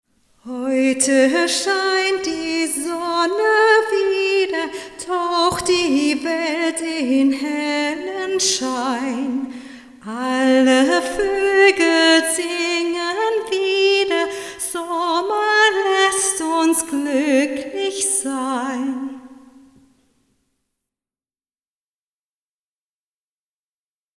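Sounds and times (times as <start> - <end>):
vocals with hall reverb at 40 percent wet: 0.2 - 20.0.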